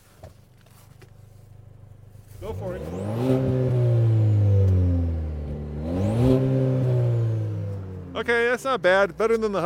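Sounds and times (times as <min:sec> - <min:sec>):
car engine revving: 0:02.3 - 0:09.6
speech: 0:02.4 - 0:03.6, 0:08.2 - 0:09.6.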